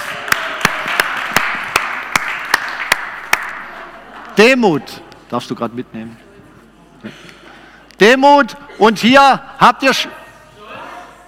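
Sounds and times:
applause: 0.0s - 3.7s
speech: 4.4s - 6.2s, 8.0s - 10.2s.

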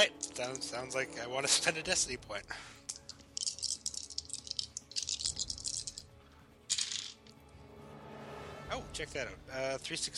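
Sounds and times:
speech: 0.0s - 2.8s, 9.0s - 10.1s
dice being rolled: 2.9s - 6.1s, 6.7s - 7.3s.

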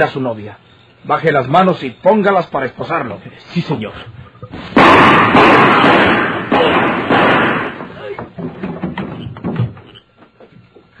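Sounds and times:
speech: 0.0s - 5.9s
heavy thuds: 4.6s - 9.8s
gunshot in a Spanish-language radio drama: 4.7s - 8.0s.

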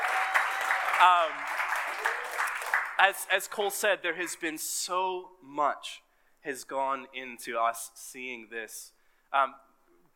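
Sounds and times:
cheer or whoop: 0.0s - 2.6s
crowd clapping: 0.0s - 4.4s
speech: 1.0s - 9.7s.

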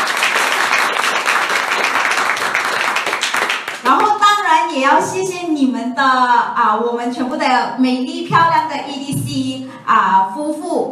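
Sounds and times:
audience applause: 0.0s - 4.1s
speech: 4.8s - 10.9s.

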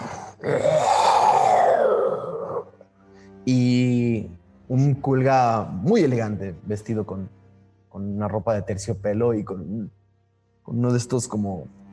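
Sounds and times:
person imitating a king's grunt: 0.0s - 2.7s
speech: 3.4s - 3.8s, 4.7s - 7.4s, 8.0s - 10.0s, 10.7s - 11.8s.

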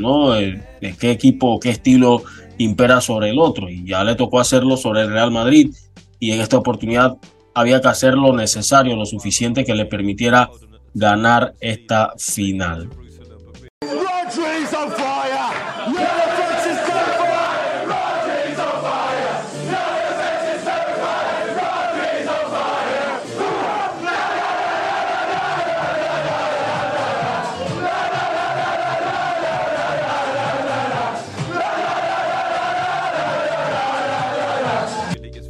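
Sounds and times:
speech: 0.0s - 13.0s
sharp yells: 13.8s - 35.0s
football team chanting and shouting in a dressing room: 13.8s - 35.2s
hands clapping: 14.3s - 18.2s.

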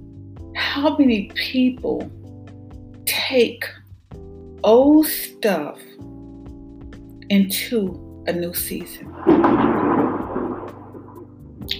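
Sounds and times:
speech: 0.6s - 2.2s, 3.3s - 3.8s, 4.6s - 6.1s, 7.3s - 9.7s
thunder: 9.0s - 11.4s.

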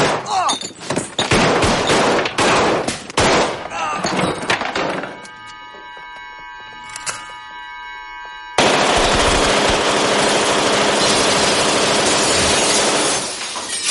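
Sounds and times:
shattering glass: 0.1s - 5.4s, 11.0s - 13.8s
clattering debris: 0.2s - 5.5s, 11.0s - 13.8s
rapid automatic gunfire shooting up a bar: 1.3s - 3.6s, 8.6s - 13.2s
ringing tones: 4.0s - 10.0s.

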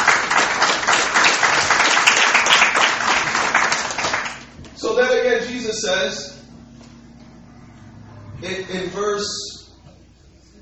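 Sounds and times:
crowd applauding: 0.0s - 4.5s
speech: 5.8s - 6.4s, 8.4s - 9.5s.

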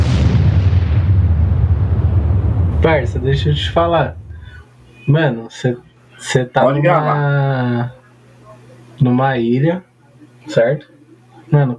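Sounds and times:
bomb explosion sound effect: 0.0s - 4.7s
speech: 2.8s - 4.2s, 5.1s - 8.0s, 9.0s - 10.9s, 11.5s - 11.7s.

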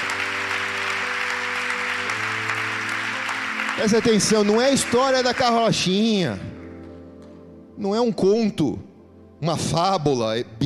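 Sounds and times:
audience applause: 0.0s - 6.1s
organ or keyboard chords: 0.0s - 10.6s
speech: 3.8s - 6.5s, 7.8s - 10.6s.

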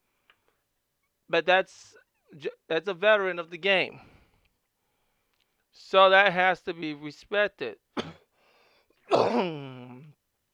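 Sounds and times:
speech: 1.3s - 4.1s, 5.8s - 8.1s, 9.1s - 9.8s
harsh cough trailing into a hoarse groan: 8.0s - 8.3s, 9.0s - 10.2s.

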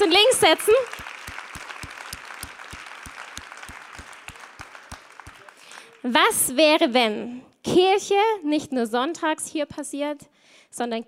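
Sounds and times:
speech: 0.0s - 1.1s, 6.0s - 11.0s
audience applause: 0.0s - 6.1s.

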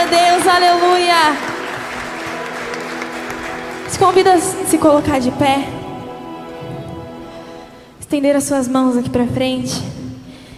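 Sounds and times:
audience applauding: 0.0s - 7.3s
speech: 3.9s - 5.8s, 8.1s - 10.0s.

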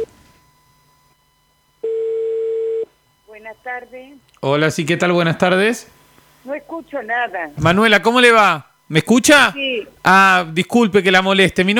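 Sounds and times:
telephone tone: 0.0s - 4.0s
speech: 3.4s - 11.7s.

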